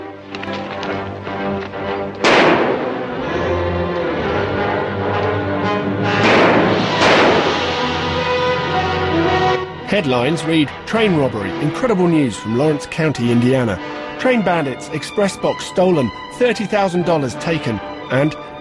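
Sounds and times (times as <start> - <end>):
droning tones: 0.0 - 16.4
gunfire from officials on a train shooting at escaping train robbers: 0.4 - 3.2, 6.1 - 8.8
speech: 10.0 - 18.5.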